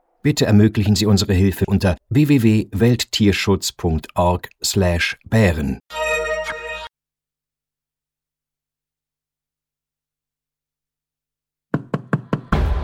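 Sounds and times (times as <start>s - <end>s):
speech: 0.2s - 6.0s
knocking on a door: 11.7s - 12.6s.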